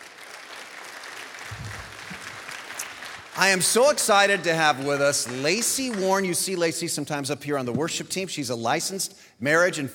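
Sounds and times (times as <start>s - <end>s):
audience applause welcoming a panel onto a stage: 0.0s - 6.2s
speech: 3.4s - 9.9s.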